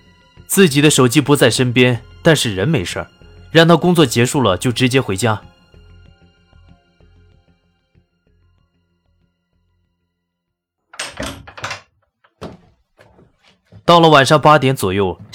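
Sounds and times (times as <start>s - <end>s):
speech: 0.5s - 5.5s, 13.9s - 15.3s
front door being opened: 10.9s - 13.3s.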